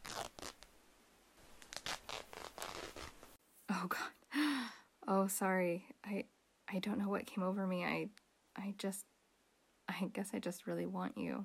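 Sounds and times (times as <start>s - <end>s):
shirt being ripped off: 0.0s - 0.7s, 1.4s - 3.4s
speech: 3.8s - 4.2s, 5.1s - 9.1s, 9.9s - 11.4s.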